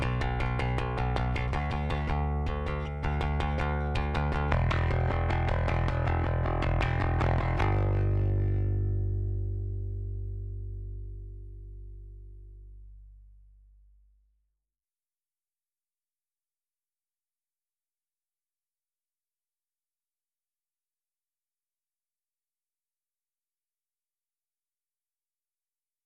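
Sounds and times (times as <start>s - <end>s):
seven bass DI: 0.0s - 14.4s.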